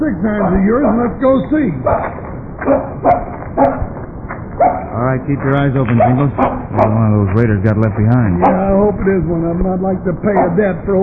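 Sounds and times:
speech: 0.0 - 3.7, 5.1 - 11.0
low rough noise: 0.0 - 11.0
dog barking at something in the bushes: 0.4 - 1.1, 1.8 - 4.0, 4.6 - 5.0, 5.9 - 7.1, 8.3 - 8.8, 10.3 - 10.7.

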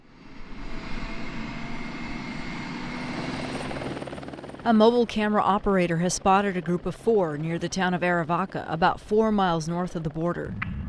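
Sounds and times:
AS-350 A-Star Border Patrol helicopter rotor and turbine drone: 0.0 - 10.8
speech: 4.6 - 10.7.

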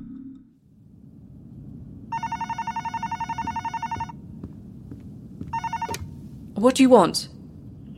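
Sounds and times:
telephone ringing: 2.2 - 4.2, 5.5 - 6.1
speech: 6.6 - 7.4.

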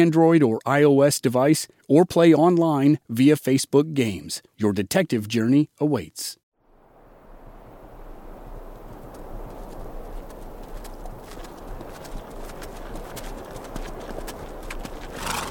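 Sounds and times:
speech: 0.0 - 6.4
horse hooves clopping: 8.6 - 15.4.

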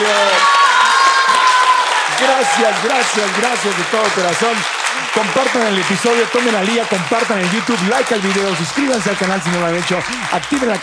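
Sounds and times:
audience applause: 0.0 - 10.8
speech: 2.6 - 10.8.

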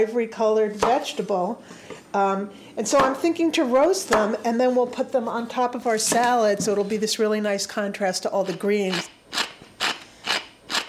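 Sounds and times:
speech: 0.0 - 9.4
fresh black pepper being ground: 8.5 - 10.8.

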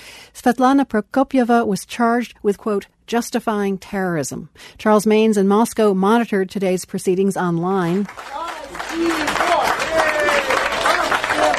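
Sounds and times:
speech: 0.4 - 9.6
supporters applauding in court: 7.9 - 11.5.

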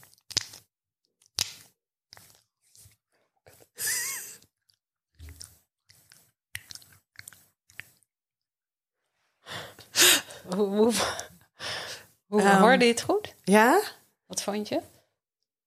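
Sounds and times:
body lotion squished on skin: 0.0 - 8.1
speech: 10.5 - 11.3, 12.3 - 14.9.

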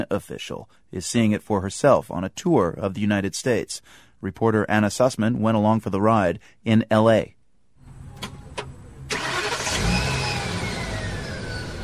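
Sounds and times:
speech: 0.0 - 7.4
bus engine running: 7.9 - 11.8.

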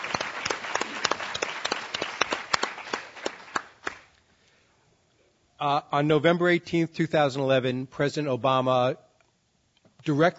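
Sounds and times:
small group applause: 0.0 - 4.2
speech: 5.6 - 9.0, 10.0 - 10.3.

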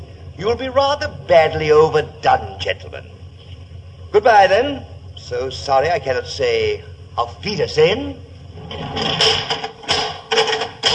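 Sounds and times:
speech: 0.4 - 3.2, 4.1 - 9.8
door being bolted: 8.7 - 10.9.

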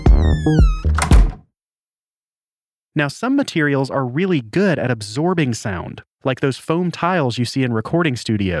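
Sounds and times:
door opening: 0.2 - 1.4
speech: 0.4 - 0.8, 3.0 - 8.5.

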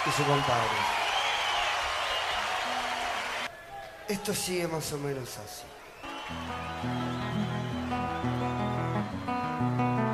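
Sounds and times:
audience applause: 0.0 - 3.5, 6.0 - 9.8
speech: 0.1 - 1.0, 4.1 - 7.4.

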